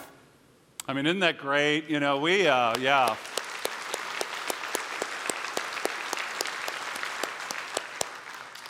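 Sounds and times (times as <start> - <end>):
speech: 0.9 - 3.3
people in Saginaw clapping for workers: 2.6 - 8.6.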